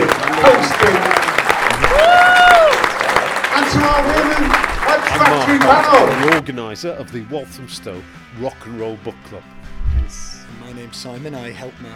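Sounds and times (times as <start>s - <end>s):
audience applause: 0.0s - 6.4s
scattered cheers and voices: 0.2s - 6.4s
speech: 6.5s - 11.9s.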